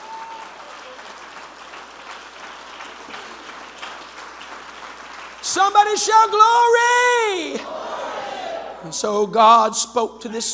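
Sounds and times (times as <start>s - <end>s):
audience clapping: 0.0s - 7.6s
speech: 5.5s - 7.9s, 8.8s - 10.5s.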